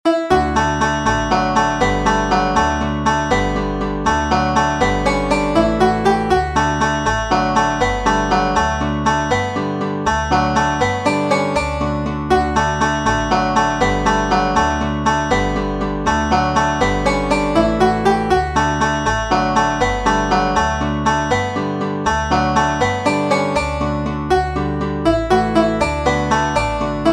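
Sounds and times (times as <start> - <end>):
Irish banjo playing a traditional jig: 0.1 - 27.1.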